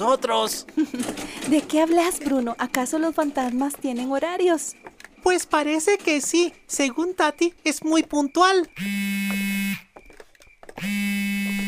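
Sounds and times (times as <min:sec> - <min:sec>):
speech: 0:00.0 - 0:09.5, 0:10.8 - 0:11.1
mobile phone notification vibrating: 0:08.8 - 0:09.9, 0:10.8 - 0:11.6.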